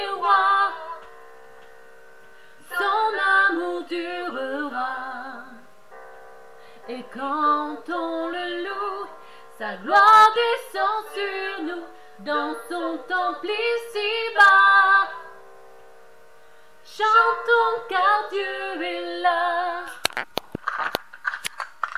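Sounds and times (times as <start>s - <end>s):
vocal duet singing: 0.0s - 1.2s, 2.6s - 5.7s, 6.8s - 15.4s, 16.9s - 20.0s.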